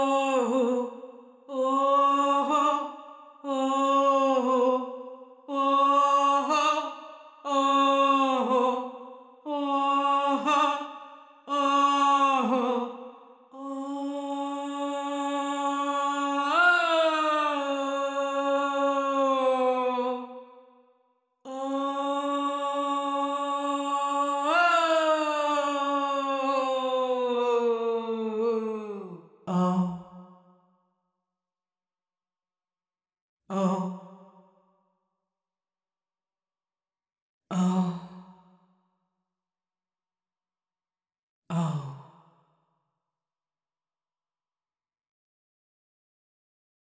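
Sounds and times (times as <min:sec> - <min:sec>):
vocals with effects: 0:00.0 - 0:20.6, 0:21.5 - 0:30.2, 0:33.5 - 0:34.2, 0:37.5 - 0:38.3, 0:41.5 - 0:42.1.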